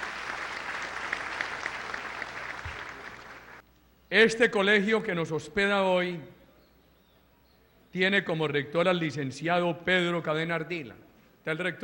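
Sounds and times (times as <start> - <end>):
audience applause: 0.0 - 3.6
speech: 4.1 - 6.4, 7.9 - 11.8.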